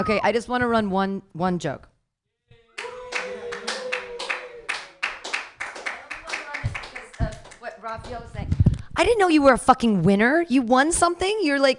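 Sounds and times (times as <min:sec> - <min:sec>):
speech: 0:00.0 - 0:01.9, 0:07.9 - 0:11.7
hand clapping for the host at an open mic comedy show: 0:02.8 - 0:08.3.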